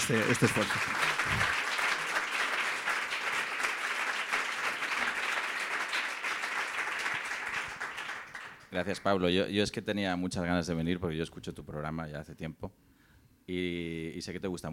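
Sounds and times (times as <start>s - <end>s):
crowd applause: 0.0s - 8.7s
speech: 0.1s - 1.6s, 8.7s - 12.9s, 13.5s - 14.7s.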